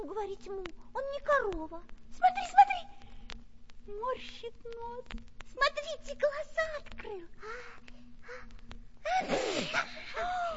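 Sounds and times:
speech: 0.1s - 2.9s, 3.9s - 10.5s
person sneezing: 9.1s - 10.2s.

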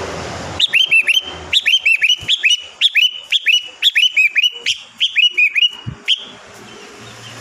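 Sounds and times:
sooty-headed bulbul whistled song: 0.6s - 6.4s.

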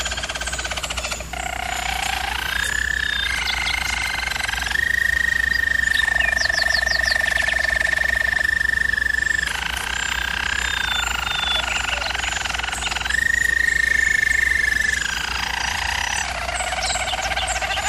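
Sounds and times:
German Roller canary rolling song: 0.0s - 17.8s.

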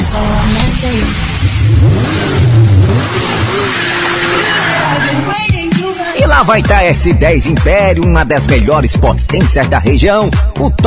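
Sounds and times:
motorcycle engine revving: 0.0s - 5.6s
speech: 0.2s - 4.0s, 6.3s - 10.8s.

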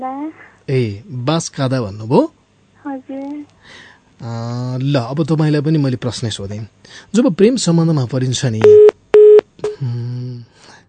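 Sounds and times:
speech: 0.0s - 8.9s
electronic beep as a caller's phone line cuts out: 8.6s - 9.8s.

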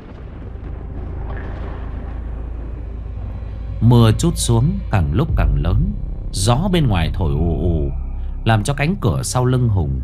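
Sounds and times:
loud thunderclap: 0.0s - 3.4s
speech: 3.8s - 10.0s.

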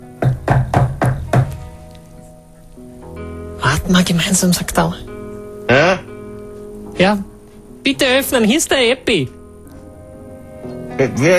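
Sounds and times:
firm knocks on a party door from outside: 0.2s - 1.6s
speech: 3.9s - 5.1s, 7.0s - 9.4s, 11.0s - 11.3s.

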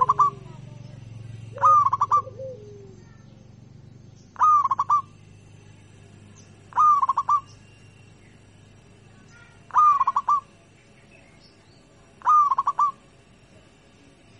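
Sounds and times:
zebra dove singing in stuttering bursts of rapid cooing notes: 0.0s - 3.4s, 4.3s - 5.2s, 6.6s - 7.6s, 9.4s - 10.7s, 12.1s - 13.2s.

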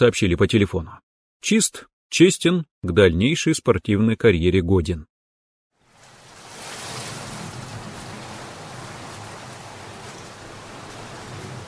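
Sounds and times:
speech: 0.0s - 5.1s
steady rain falling: 5.8s - 11.6s.

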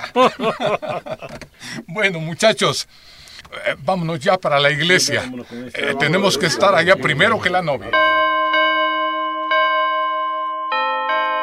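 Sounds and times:
laughter: 0.0s - 1.4s, 4.8s - 8.2s
speech: 0.1s - 8.2s
church bells ringing: 6.0s - 11.4s.

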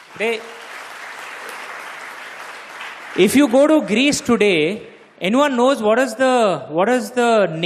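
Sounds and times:
audience applause: 0.0s - 4.0s
speech: 0.2s - 0.6s, 3.1s - 7.6s.

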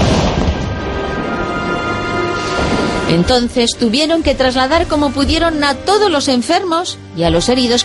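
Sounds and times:
French cannon fire barrage bombarding the Nuestra Señora de Gracia hospital: 0.0s - 3.4s
speech: 3.1s - 7.8s.

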